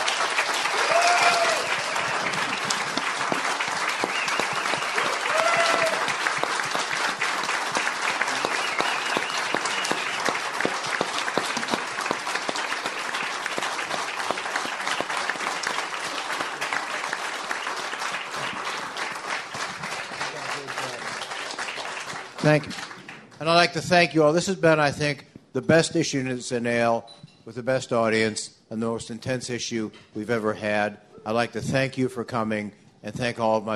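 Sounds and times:
crowd applauding people being honoured at an evening event: 0.0 - 23.4
speech: 22.5 - 22.8, 23.4 - 33.7.

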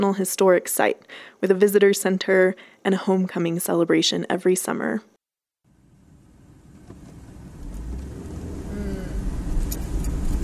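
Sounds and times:
speech: 0.0 - 5.1
car engine and tyre rumble driving down a country road on the Wyoming-Nebraska border: 5.7 - 10.4.

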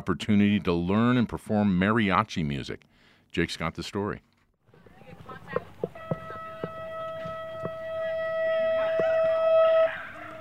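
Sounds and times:
speech: 0.0 - 4.3
school bell ringing at Chavez Huerta Preparatory Academy: 5.8 - 10.3.

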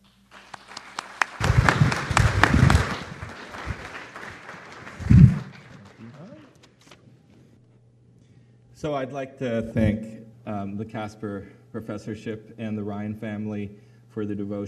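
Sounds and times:
scattered audience applause welcoming a professor on a university campus: 0.2 - 7.0
murmuring voices: 1.4 - 6.7
speech: 8.8 - 14.6.

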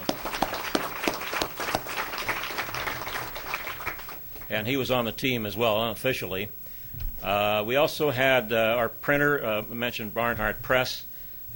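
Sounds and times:
audience applause: 0.0 - 4.5
speech: 4.5 - 6.6, 7.2 - 11.5.

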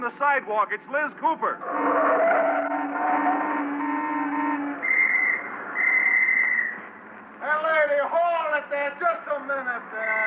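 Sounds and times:
traffic: 0.0 - 10.2
speech: 0.1 - 3.5, 7.9 - 10.2
police officer's whistle: 2.1 - 6.8.

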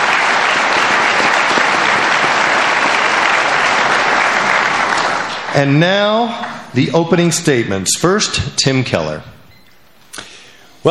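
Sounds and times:
audience applause: 0.0 - 6.6
speech: 5.6 - 9.4.

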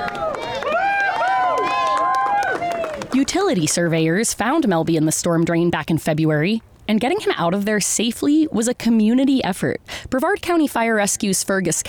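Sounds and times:
big crowd applauding and cheering: 0.0 - 3.3
speech: 3.2 - 11.8.

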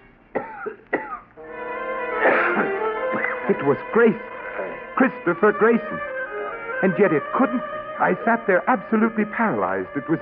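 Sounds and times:
man coughing on a nearby cot: 0.4 - 1.3, 2.2 - 3.6
hoarse rasping throat sound: 2.3 - 3.5
speech: 3.5 - 4.3, 5.0 - 6.1, 6.8 - 10.2.

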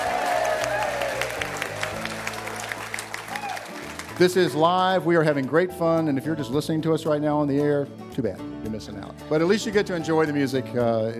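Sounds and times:
live audience applause at a music show on the University of West Florida's Pensacola campus: 0.0 - 5.1
speech: 4.2 - 11.1.

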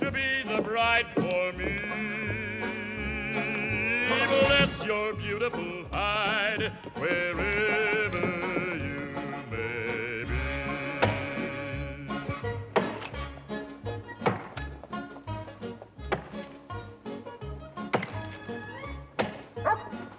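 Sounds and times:
orchestral music track: 0.1 - 20.1
speech: 0.2 - 2.2, 4.8 - 8.0
axe chopping wood: 11.0 - 11.4, 12.3 - 13.3, 14.1 - 14.9, 16.0 - 16.6, 17.8 - 18.4, 19.1 - 19.9.

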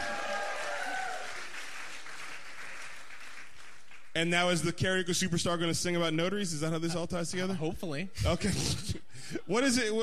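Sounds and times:
audience applause for notaries at a live show: 0.0 - 4.2
speech: 4.2 - 10.0.

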